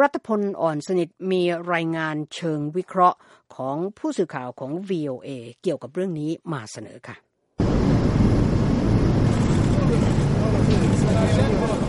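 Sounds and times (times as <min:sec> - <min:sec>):
speech: 0:00.0 - 0:07.2
airplane engines roaring: 0:07.6 - 0:11.8.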